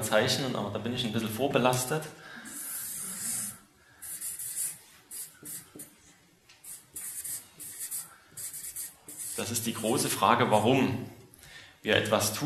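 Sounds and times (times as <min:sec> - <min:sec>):
speech: 0:00.1 - 0:02.4, 0:09.4 - 0:11.2, 0:11.8 - 0:12.4
pen or marker drawing: 0:02.5 - 0:05.9, 0:06.6 - 0:10.0.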